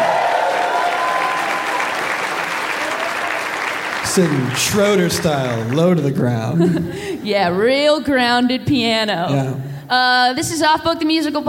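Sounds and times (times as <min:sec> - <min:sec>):
audience applause for piano player: 0:00.0 - 0:06.5
laughter: 0:04.2 - 0:07.2
speech: 0:04.2 - 0:11.4.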